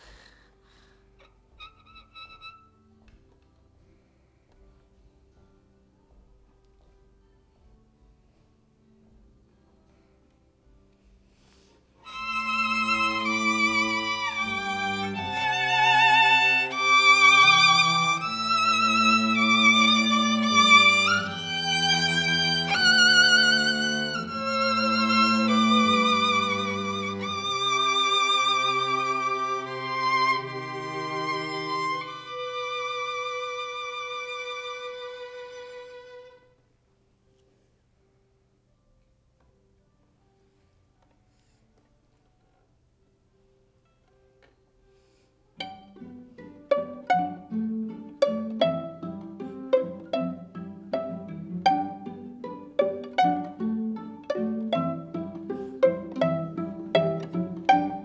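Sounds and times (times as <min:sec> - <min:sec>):
violin: 0:00.0 - 0:03.6, 0:11.4 - 0:36.7, 0:45.6 - 0:58.0.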